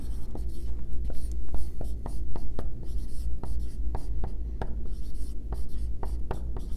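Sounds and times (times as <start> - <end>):
pen writing the word highlighter on paper: 0.0 - 2.2, 2.9 - 4.1, 4.9 - 6.7.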